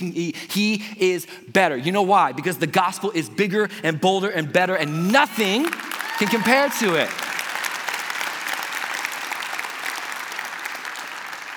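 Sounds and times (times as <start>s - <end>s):
speech: 0.0s - 7.3s
audience applause: 5.2s - 11.5s.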